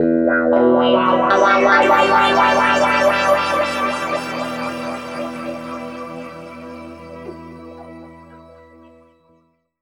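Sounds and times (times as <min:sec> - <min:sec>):
guitar with pitch shift and wah effect in E: 0:00.0 - 0:08.1.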